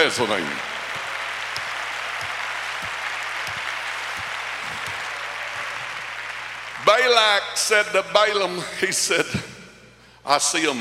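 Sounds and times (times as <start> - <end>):
crowd applauding: 0.0 - 7.5
speech: 0.1 - 0.8, 6.9 - 9.5, 10.3 - 10.7.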